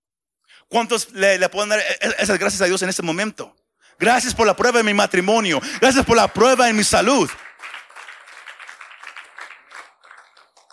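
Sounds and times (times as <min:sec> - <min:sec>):
speech: 0:00.6 - 0:07.8
audience applause: 0:05.8 - 0:10.7.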